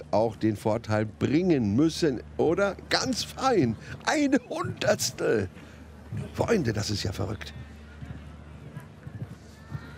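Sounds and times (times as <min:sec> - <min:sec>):
speech: 0:00.1 - 0:07.6
horse galloping in a show jumping round: 0:07.1 - 0:09.9.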